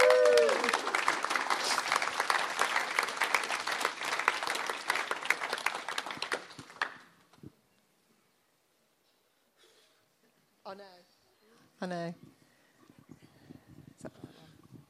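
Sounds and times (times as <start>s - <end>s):
audience applause: 0.0s - 7.1s
speech: 11.8s - 12.3s.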